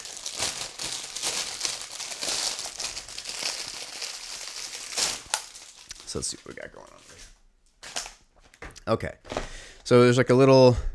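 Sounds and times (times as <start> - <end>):
plastic packaging crinkling as reusable silicone bags are unwrapped: 0.0 - 8.2
speech: 6.1 - 7.4, 8.9 - 10.9.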